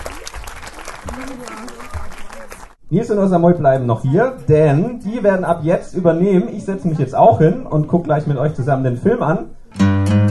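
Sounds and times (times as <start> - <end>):
audience applause for event hosts: 0.0 - 2.8
speech: 1.2 - 9.9.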